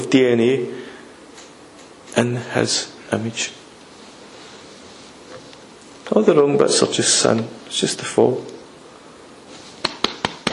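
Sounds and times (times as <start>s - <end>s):
speech: 0.1s - 0.9s, 2.2s - 3.6s, 6.1s - 8.6s
slapping a belly: 9.8s - 10.5s.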